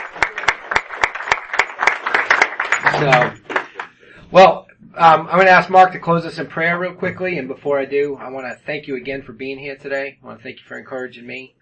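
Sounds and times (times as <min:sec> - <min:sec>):
audience applause: 0:00.0 - 0:04.0
speech: 0:02.9 - 0:03.4, 0:04.3 - 0:11.6.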